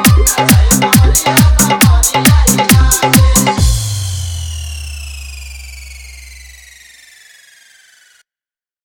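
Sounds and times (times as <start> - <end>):
full dholki mix: 0.0 - 5.6.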